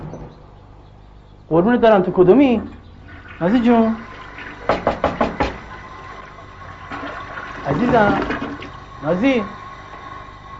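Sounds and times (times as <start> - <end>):
speech: 1.5 - 2.8, 3.4 - 4.1, 7.8 - 8.4, 9.0 - 9.6
knocking on a toilet door: 4.7 - 5.7.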